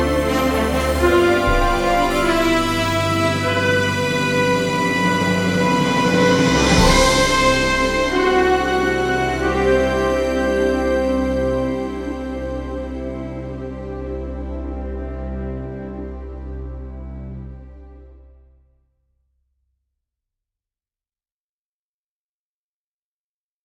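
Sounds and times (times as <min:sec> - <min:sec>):
orchestral Broadway music: 0:00.0 - 0:18.4.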